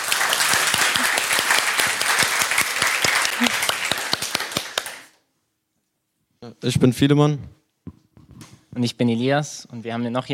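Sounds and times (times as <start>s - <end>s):
audience applause: 0.0s - 5.2s
speech: 6.6s - 7.6s, 8.8s - 10.3s.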